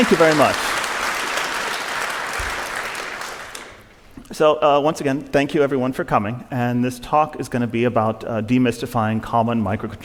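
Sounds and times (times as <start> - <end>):
speech: 0.0 - 0.7, 4.3 - 10.0
audience applause: 0.0 - 3.9.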